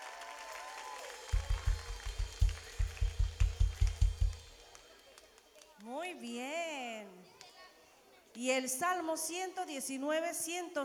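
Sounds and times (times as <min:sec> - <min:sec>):
audience applause: 0:00.0 - 0:05.6
speech: 0:05.9 - 0:07.2, 0:08.4 - 0:10.8.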